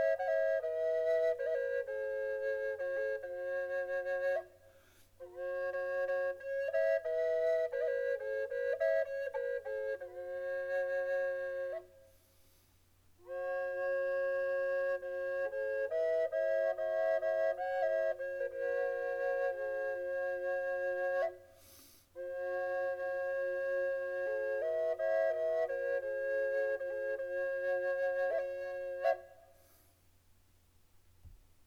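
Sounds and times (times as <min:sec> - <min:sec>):
Native American triple flute of cherry and maple in F sharp 432: 0:00.0 - 0:12.2, 0:13.2 - 0:29.7.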